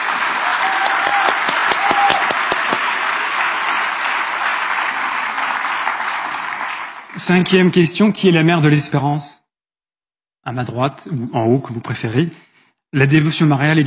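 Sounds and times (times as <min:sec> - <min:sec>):
loud audience applause: 0:00.0 - 0:07.7
speech: 0:07.2 - 0:09.4, 0:10.4 - 0:13.8.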